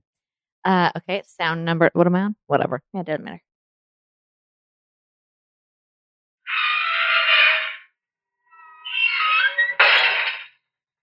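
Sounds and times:
speech: 0.6 - 3.5
gate creaking: 6.5 - 7.9, 8.5 - 10.6
gate clanking shut: 8.9 - 10.5.

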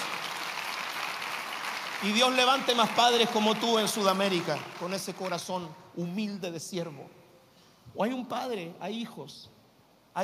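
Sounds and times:
audience applause: 0.0 - 5.5
speech: 2.0 - 7.2, 7.9 - 9.6.

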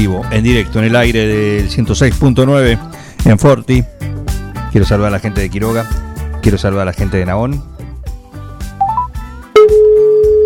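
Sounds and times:
speech: 0.0 - 4.1, 4.7 - 7.7
short high beeps: 8.8 - 10.4
telephone ringback tone from a call attempt to a radio listener: 8.8 - 10.4.

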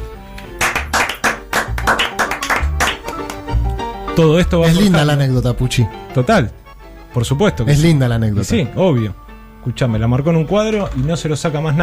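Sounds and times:
hand clapping: 0.3 - 3.8
speech: 4.2 - 11.8.

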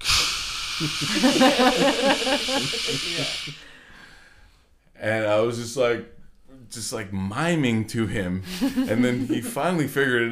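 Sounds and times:
voice imitating a rushing waterfall: 0.0 - 3.6
laughter: 0.8 - 3.6, 8.5 - 9.6
speech: 0.8 - 3.7, 5.0 - 10.3.

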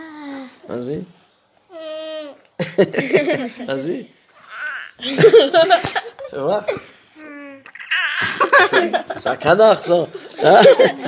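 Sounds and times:
speech: 0.7 - 1.2, 2.7 - 4.2, 5.0 - 6.9, 8.3 - 11.0
child imitating a crying baby: 1.7 - 2.5, 4.4 - 5.0, 7.2 - 8.3
laughter: 2.6 - 3.6, 5.0 - 6.8, 8.2 - 9.4, 10.0 - 11.0.

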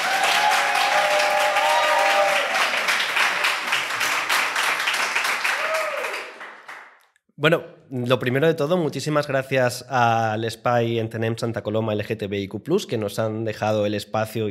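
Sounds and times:
live audience applause at a recorded show in Santa Coloma: 0.0 - 7.0
speech: 7.4 - 14.4.

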